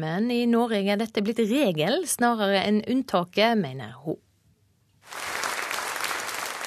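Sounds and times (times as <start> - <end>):
speech: 0.0 - 4.3
large crowd standing ovation applause: 5.0 - 6.6.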